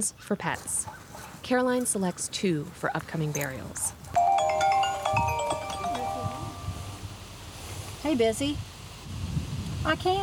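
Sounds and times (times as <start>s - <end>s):
speech: 0.0s - 4.0s, 8.0s - 8.7s, 9.8s - 10.2s
mobile phone ringing with electronic melody: 4.2s - 7.1s.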